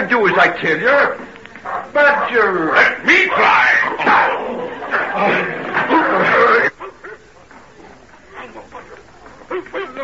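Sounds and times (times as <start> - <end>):
speech: 0.0 - 6.4
agitated human voices: 0.0 - 10.0
dog barking and snarling ferociously: 1.7 - 5.6
laughter: 3.3 - 7.3, 8.3 - 10.0.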